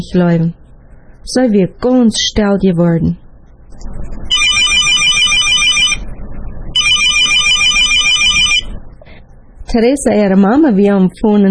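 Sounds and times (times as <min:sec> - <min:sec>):
speech: 0:00.0 - 0:00.6, 0:01.2 - 0:03.2, 0:09.7 - 0:11.5
steady low rumbling background: 0:00.0 - 0:11.5
telephone ringing: 0:04.3 - 0:06.0, 0:06.8 - 0:08.7.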